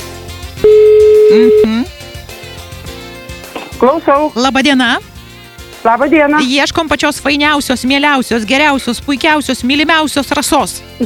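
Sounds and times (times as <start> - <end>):
loud music: 0.0 - 11.0
phone ringback tone from a studio call: 0.6 - 1.9
speech: 1.3 - 1.9, 3.8 - 5.1, 5.8 - 11.0.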